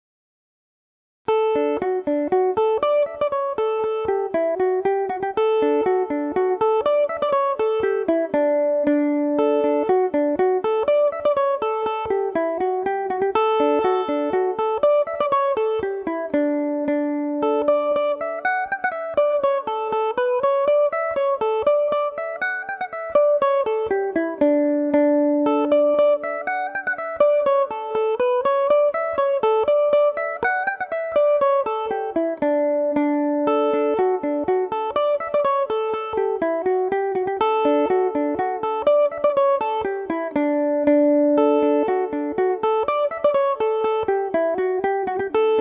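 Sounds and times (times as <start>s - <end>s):
mandolin in D major: 1.3s - 45.5s.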